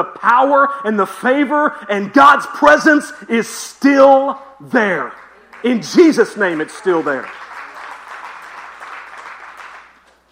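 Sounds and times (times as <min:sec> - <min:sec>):
speech: 0:00.0 - 0:07.4
scattered audience clapping: 0:05.0 - 0:10.3.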